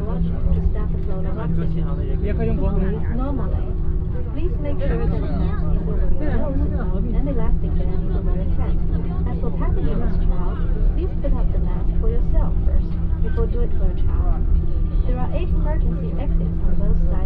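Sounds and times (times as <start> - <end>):
airplane takeoff at an airport in China: 0.0 - 17.2.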